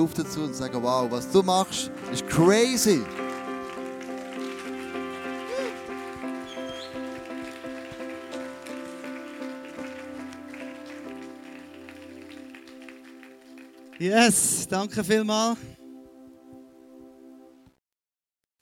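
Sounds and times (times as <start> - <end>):
speech: 0.0 - 3.3, 14.0 - 15.8
audience applause: 1.9 - 14.7.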